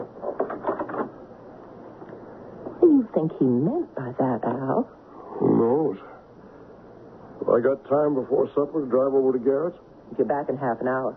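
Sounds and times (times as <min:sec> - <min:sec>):
bedroom door being closed: 0:00.0 - 0:01.2
speech: 0:03.0 - 0:06.1, 0:07.4 - 0:11.1.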